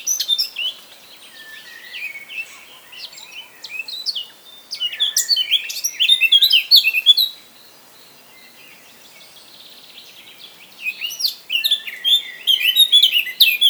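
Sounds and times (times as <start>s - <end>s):
Eurasian blackcap song: 0.0s - 7.4s, 10.7s - 13.6s.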